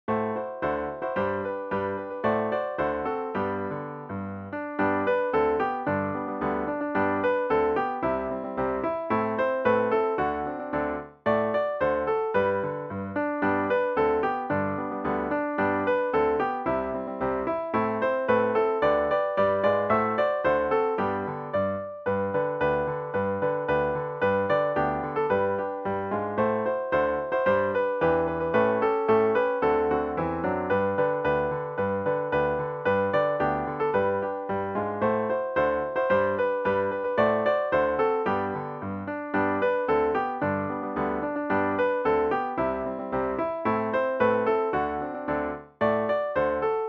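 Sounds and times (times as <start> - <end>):
Christmas song: 0.1 - 46.8.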